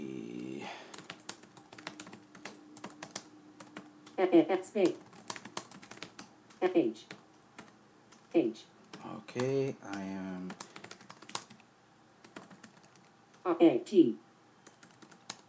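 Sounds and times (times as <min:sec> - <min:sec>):
typing sentences on a computer keyboard: 0:00.9 - 0:04.2, 0:04.8 - 0:11.6, 0:12.2 - 0:13.4, 0:14.6 - 0:15.4
speech: 0:04.2 - 0:05.1, 0:06.6 - 0:07.2, 0:08.4 - 0:10.7, 0:13.5 - 0:14.2.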